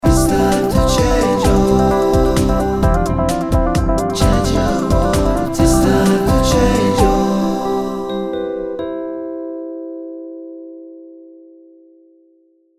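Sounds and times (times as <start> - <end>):
jingle: 0.0 - 9.3.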